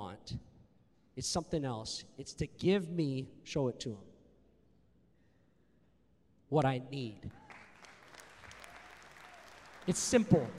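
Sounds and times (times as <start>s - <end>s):
speech: 1.2s - 4.1s, 6.5s - 7.4s, 9.8s - 10.5s
crowd applause: 7.4s - 10.5s.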